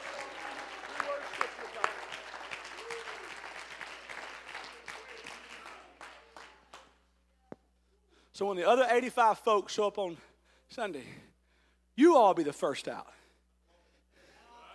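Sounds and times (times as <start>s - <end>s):
church congregation clapping hands in worship: 0.0s - 7.0s
speech: 8.4s - 11.3s, 12.0s - 13.2s.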